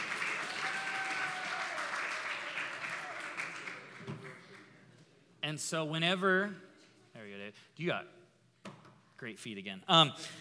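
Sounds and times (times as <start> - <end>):
crowd applauding: 0.0 - 4.7
whoops: 0.4 - 3.4
speech: 5.5 - 6.7, 7.8 - 8.2, 9.2 - 10.3.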